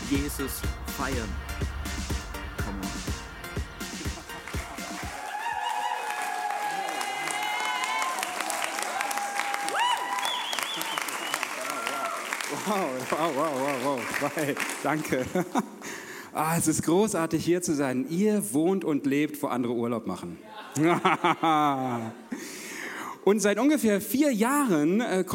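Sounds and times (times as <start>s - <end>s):
speech: 0.1s - 3.0s, 12.7s - 15.8s, 16.4s - 22.2s, 23.2s - 25.3s
laughter: 3.8s - 5.0s, 14.2s - 16.0s, 20.4s - 22.4s
church audience applause: 3.9s - 15.5s
whoops and cheering voices: 4.7s - 12.4s.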